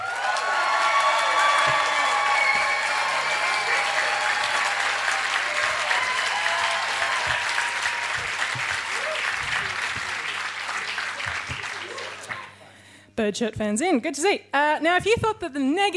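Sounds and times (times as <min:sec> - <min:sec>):
audience whoops: 0:00.0 - 0:09.4
live science comedy debate audience applause: 0:00.0 - 0:12.5
speech: 0:13.2 - 0:15.9.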